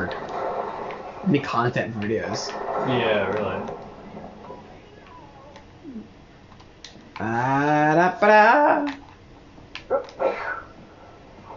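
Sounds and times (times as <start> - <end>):
speech: 1.2 - 3.8, 7.2 - 9.0
dog sneezing: 10.2 - 10.7.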